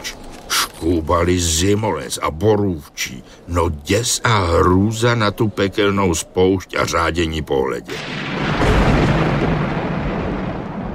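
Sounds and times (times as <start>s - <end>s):
speech: 0.8s - 8.7s
thunder from a clear sky: 7.8s - 10.9s.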